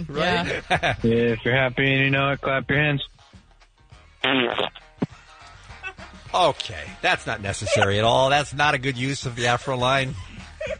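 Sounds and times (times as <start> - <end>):
laughter: 0.0 - 1.2, 7.2 - 8.3, 9.3 - 10.7
speech: 0.0 - 3.1, 4.2 - 4.8, 6.3 - 10.7
loud buzzy fart: 4.2 - 5.1.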